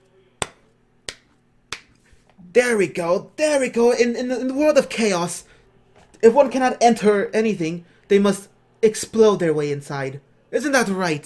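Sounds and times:
hand claps: 0.4s - 2.0s
speech: 2.6s - 5.5s, 6.2s - 11.2s.

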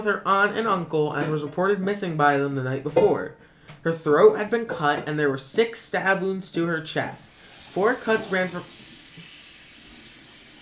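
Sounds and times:
speech: 0.0s - 8.8s
hot water running from a tap: 7.2s - 10.6s.

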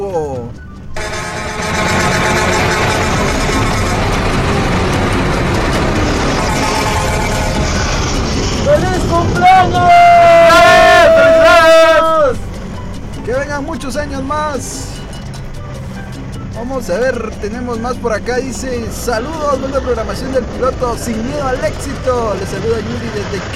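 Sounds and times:
horn blast sound effect: 1.0s - 12.5s
speech: 16.8s - 23.5s.

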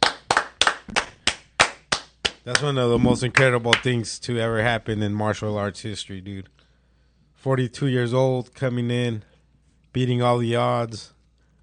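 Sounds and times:
person clapping: 0.0s - 3.9s
speech: 2.4s - 6.6s, 7.4s - 9.3s, 10.0s - 11.2s.

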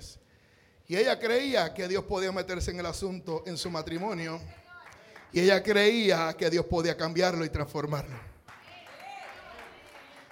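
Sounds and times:
speech: 0.9s - 4.6s, 5.3s - 8.3s
audience applause: 8.5s - 10.3s.

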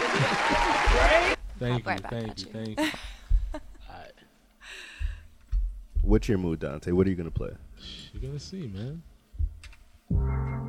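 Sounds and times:
crowd applause: 0.0s - 1.4s
laughter: 0.0s - 3.9s
speech: 1.6s - 3.1s, 6.0s - 9.1s, 10.1s - 10.5s.

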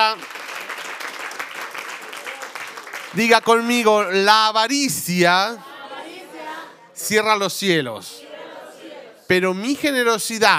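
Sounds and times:
audience applause: 0.0s - 3.5s
speech: 3.1s - 5.7s, 7.0s - 8.2s, 9.3s - 10.5s.

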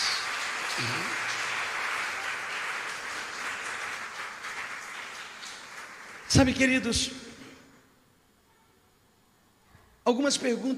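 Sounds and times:
audience applauding: 0.0s - 6.9s
low vocal tone: 0.7s - 1.2s
speech: 0.8s - 1.1s, 6.3s - 7.3s, 10.1s - 10.7s.

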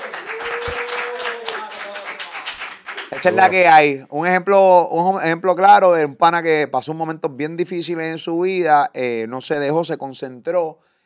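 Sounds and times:
applause: 0.0s - 3.7s
speech: 3.1s - 10.9s.

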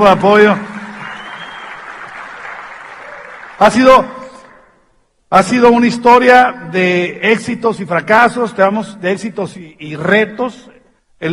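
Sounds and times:
speech: 0.0s - 0.7s, 3.6s - 4.2s, 5.3s - 11.3s
audience applause: 0.0s - 3.8s.

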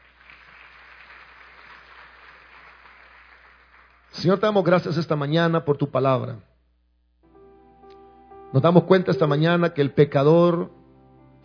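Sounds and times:
audience applause: 0.0s - 4.1s
speech: 4.2s - 6.5s, 8.5s - 10.8s.

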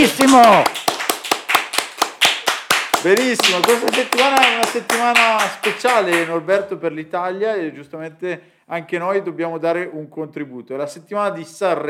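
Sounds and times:
speech: 0.0s - 0.8s, 3.0s - 11.8s
audience clapping in time: 0.0s - 6.4s.

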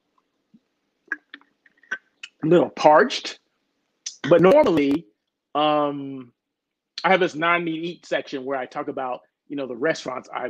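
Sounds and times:
person drinking water: 1.1s - 2.3s
speech: 2.4s - 3.4s, 4.2s - 6.4s, 7.0s - 10.4s.

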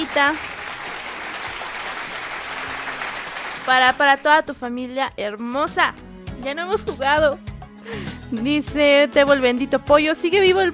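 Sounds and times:
speech: 0.0s - 0.6s, 3.6s - 10.7s
applause: 0.0s - 4.2s.

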